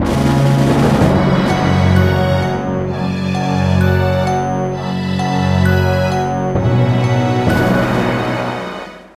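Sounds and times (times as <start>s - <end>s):
intro fanfare: 0.0s - 9.1s.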